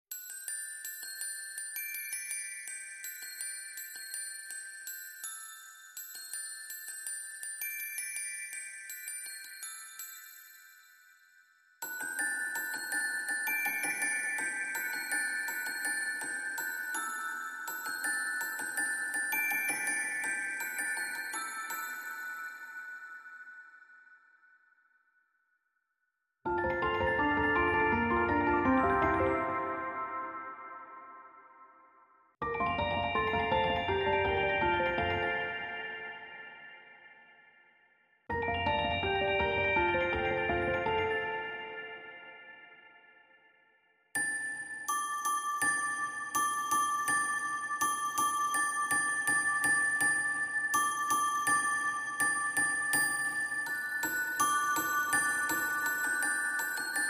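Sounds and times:
bells: 0.1s - 24.7s, 26.5s - 43.6s, 44.2s - 57.0s
piano: 26.5s - 31.5s, 32.4s - 36.3s, 38.3s - 42.4s.

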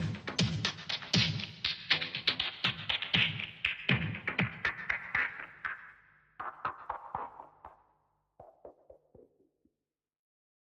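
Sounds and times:
drums: 0.0s - 7.8s.

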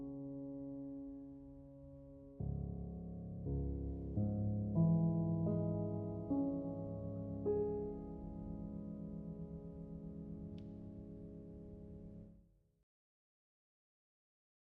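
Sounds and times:
piano prelude in C minor: 0.0s - 12.4s.

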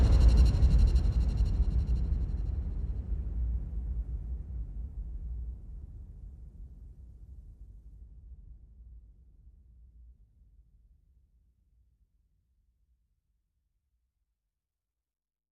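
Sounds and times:
percussion: 0.0s - 3.2s.

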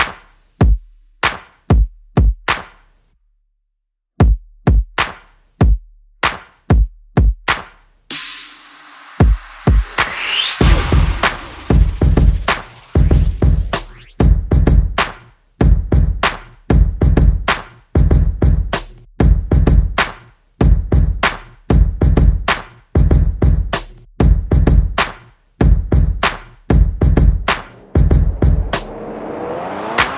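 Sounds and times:
percussion: 0.0s - 3.1s, 4.2s - 30.1s
sound effects: 8.4s - 14.3s, 27.5s - 30.1s.

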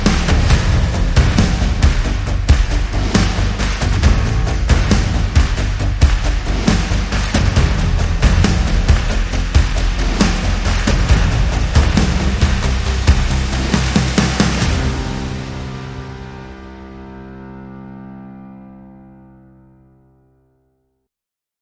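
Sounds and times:
drums: 0.0s - 16.8s
bass: 0.0s - 20.3s.

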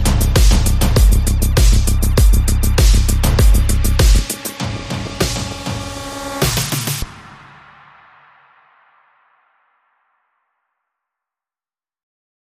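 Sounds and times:
bass: 0.0s - 7.3s
drums: 0.0s - 9.1s.

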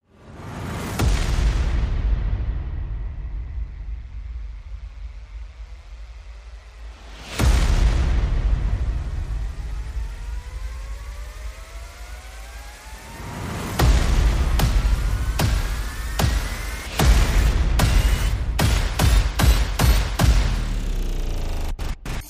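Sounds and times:
percussion: 0.1s - 22.2s
sound effects: 11.4s - 22.2s.

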